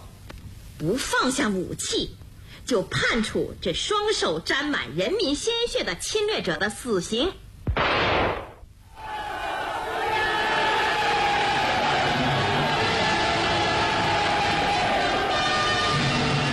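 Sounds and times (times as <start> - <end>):
speech: 0.8 - 7.4
crowd cheering and shouting in celebration of a victory: 8.9 - 16.5.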